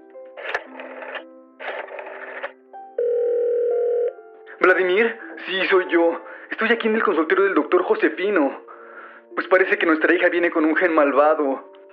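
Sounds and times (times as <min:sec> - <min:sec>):
telephone dial tone while dialing a call: 0:00.4 - 0:04.2
speech: 0:04.6 - 0:08.6, 0:09.4 - 0:11.7.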